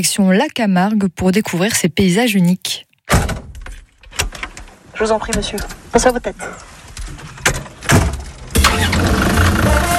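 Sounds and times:
speech: 0.0 - 3.4, 5.0 - 6.7
4x4 off-road vehicle original engine rumbling in the Camargue: 5.0 - 9.9.

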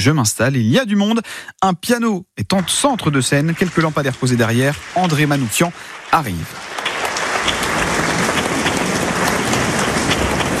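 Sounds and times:
speech: 0.0 - 6.7
audience applause: 2.6 - 10.5.

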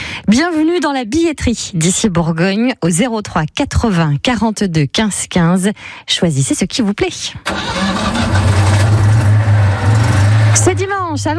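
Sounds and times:
speech: 0.3 - 8.2, 10.6 - 11.3
vintage car engine starting and idling: 7.4 - 11.0.

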